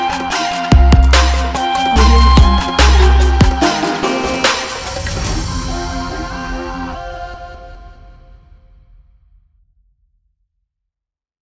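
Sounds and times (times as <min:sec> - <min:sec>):
Arabic trap music: 0:00.0 - 0:08.0.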